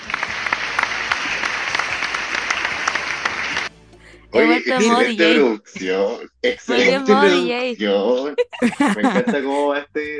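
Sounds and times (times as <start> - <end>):
applause: 0.0 - 3.7, 4.7 - 5.4, 6.8 - 7.6
speech: 4.3 - 10.1
laughter: 4.4 - 10.1.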